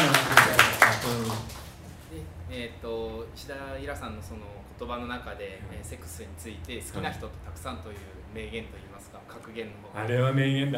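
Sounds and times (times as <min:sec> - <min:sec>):
audience applause: 0:00.0 - 0:01.8
speech: 0:03.4 - 0:10.7.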